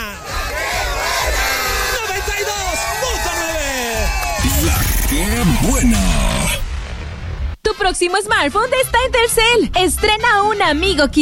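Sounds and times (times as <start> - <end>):
crowd shouting the Mexican grito: 0.0 - 6.6
speech: 5.2 - 6.3, 7.8 - 11.1.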